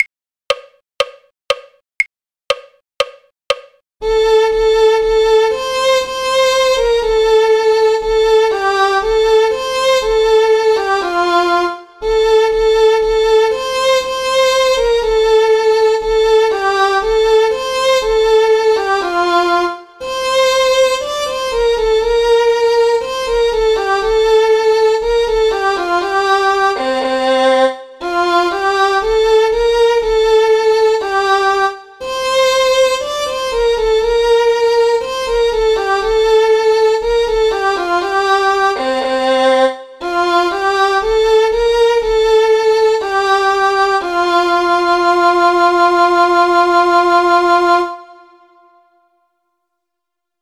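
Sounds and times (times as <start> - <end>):
violin: 4.0 - 48.9.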